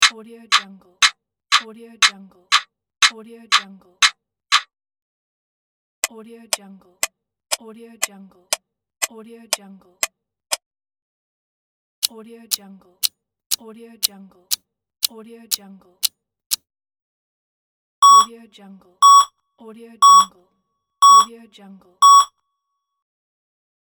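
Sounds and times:
clock timer: 0.0s - 0.6s, 18.0s - 18.3s, 19.0s - 19.3s, 20.0s - 20.3s, 21.0s - 21.3s, 22.0s - 22.3s.

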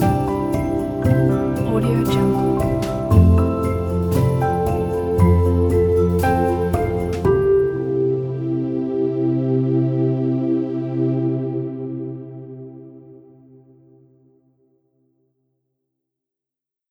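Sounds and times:
beautiful pure soft piano: 0.0s - 13.3s.

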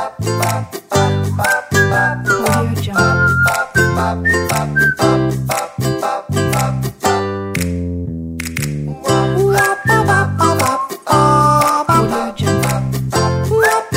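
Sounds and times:
person singing: 0.0s - 7.2s, 9.0s - 13.9s
ukulele: 0.0s - 13.9s.

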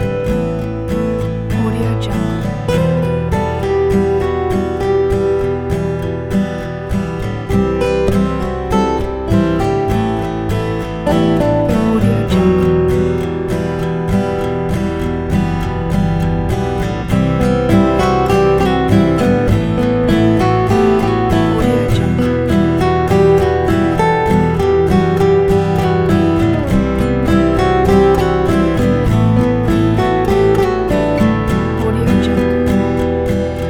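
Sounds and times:
nostalgic acoustic guitar: 0.0s - 33.6s.

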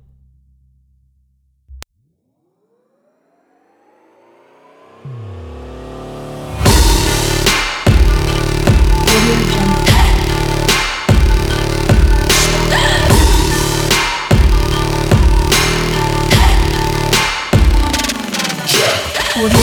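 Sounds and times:
aggressive sport electro music: 5.0s - 19.6s.

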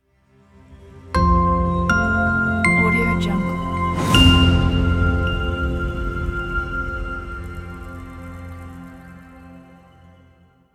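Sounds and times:
tech logo jingle: 1.8s - 9.3s.

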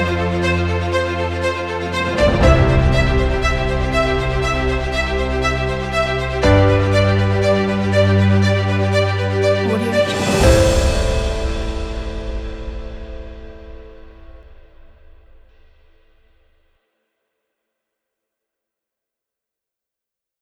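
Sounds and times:
inspirational epic orchestral music: 0.0s - 16.0s.

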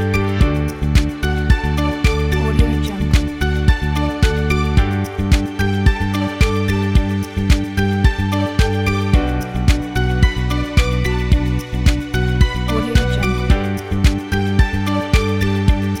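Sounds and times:
bright inspiration and calm corporate music: 0.0s - 15.9s.

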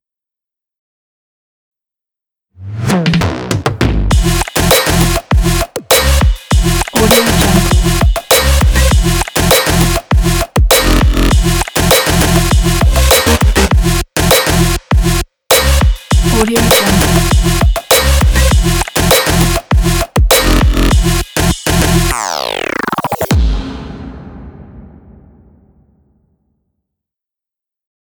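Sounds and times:
robotic breakbeat: 2.9s - 23.6s.

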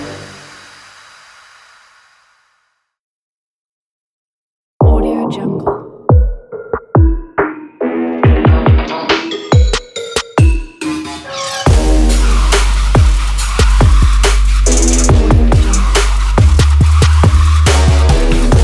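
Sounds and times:
epic hip hop beat: 5.7s - 18.6s.

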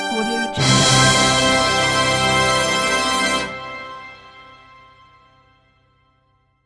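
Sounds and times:
win fanfare: 0.1s - 3.6s.

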